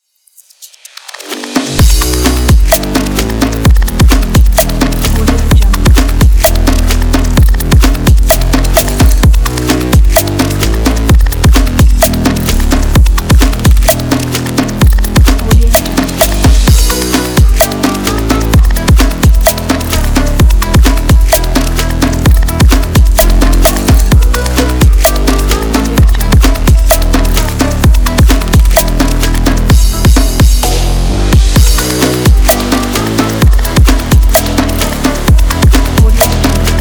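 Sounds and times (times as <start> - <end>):
dynamic beat: 0.4 - 36.7.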